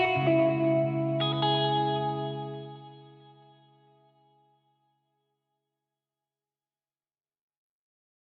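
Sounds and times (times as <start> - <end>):
reflective electric guitar: 0.0 - 4.3.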